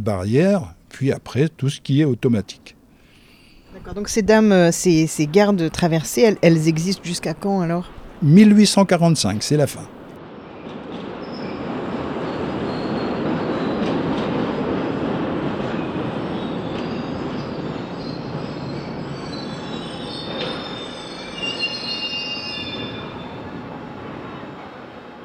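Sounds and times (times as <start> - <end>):
speech: 0.0 - 2.8, 3.8 - 10.0
steam train rumbling along: 0.0 - 25.2
steam train wheels squealing: 3.0 - 10.2, 16.2 - 23.6.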